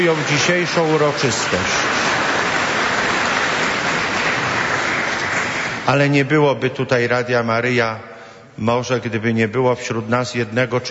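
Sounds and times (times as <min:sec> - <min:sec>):
speech: 0:00.0 - 0:02.1, 0:05.9 - 0:10.9
audience applause: 0:00.0 - 0:06.1.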